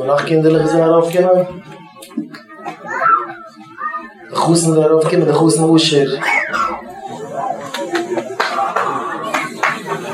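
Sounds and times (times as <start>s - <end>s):
speech: 0.0s - 3.0s, 4.3s - 6.7s
laughter: 6.1s - 10.1s
applause: 7.6s - 10.1s.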